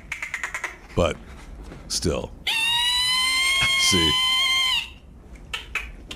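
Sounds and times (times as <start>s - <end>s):
speech: 1.0s - 1.3s, 1.9s - 2.4s, 3.9s - 4.3s
whale harmonic call: 2.5s - 5.7s.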